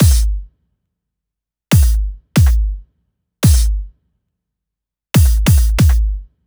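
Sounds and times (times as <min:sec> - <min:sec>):
bass drum loop at 140 BPM: 0:00.0 - 0:00.5, 0:01.7 - 0:02.8, 0:03.4 - 0:03.9, 0:05.2 - 0:06.3.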